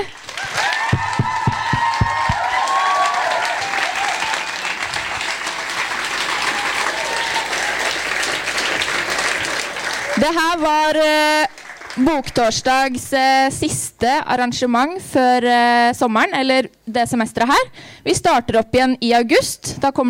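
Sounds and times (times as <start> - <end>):
audience applause: 0.0 - 12.6
speech: 10.2 - 20.0.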